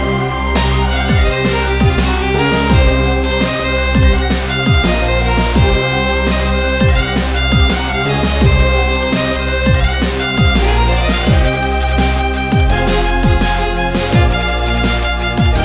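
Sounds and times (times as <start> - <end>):
bass sound: 0.0 - 15.6.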